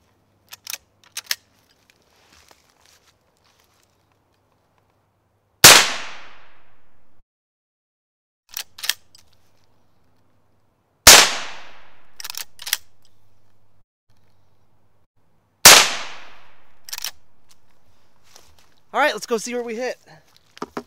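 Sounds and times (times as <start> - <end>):
gunshots from a .22 Magnum gun with heavier-than-normal rounds, practice shots at a target: 5.6 - 6.7, 11.1 - 12.6, 15.7 - 16.8
small mechanical clicks: 12.2 - 13.2, 16.8 - 17.2
speech: 19.0 - 20.2.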